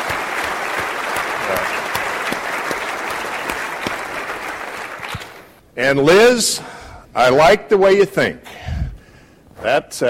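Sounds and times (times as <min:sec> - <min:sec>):
audience applause: 0:00.0 - 0:05.4
speech: 0:05.8 - 0:08.5, 0:09.6 - 0:10.0.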